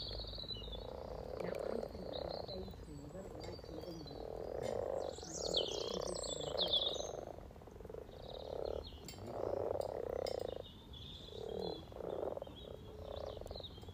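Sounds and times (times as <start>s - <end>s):
faint bird calls: 0.0s - 13.9s
frog chorus purring croaks: 0.0s - 13.9s.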